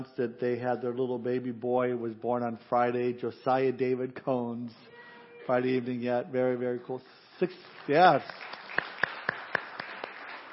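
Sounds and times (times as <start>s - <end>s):
speech: 0.0s - 4.9s, 5.5s - 8.6s
sharp claps: 7.4s - 10.5s.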